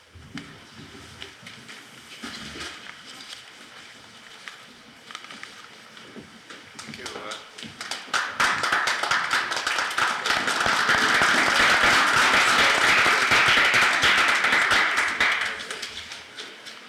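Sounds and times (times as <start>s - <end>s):
round of applause for students and teachers: 7.2s - 16.2s.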